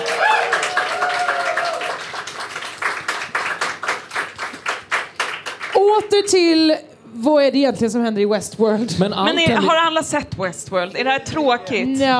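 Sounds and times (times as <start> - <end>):
crowd cheering: 0.0 - 4.0
crowd applauding: 0.0 - 6.0
speech: 6.2 - 12.1.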